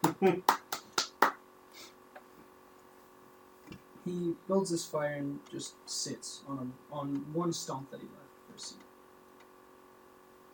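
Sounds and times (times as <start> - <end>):
hand clapping: 0.0 - 1.4
speech: 0.2 - 0.6, 4.1 - 8.8.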